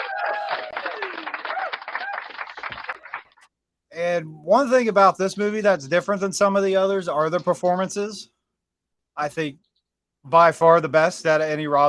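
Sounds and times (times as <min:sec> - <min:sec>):
whoops and whistles: 0:00.0 - 0:02.2
applause: 0:00.0 - 0:03.5
speech: 0:04.0 - 0:08.3, 0:09.2 - 0:09.6, 0:10.2 - 0:11.8.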